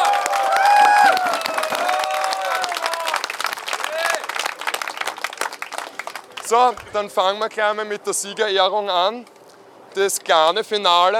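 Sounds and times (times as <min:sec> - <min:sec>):
whoops and cheers: 0:00.0 - 0:04.2
big round of applause: 0:00.0 - 0:07.5
speech: 0:06.5 - 0:09.4, 0:10.0 - 0:11.1.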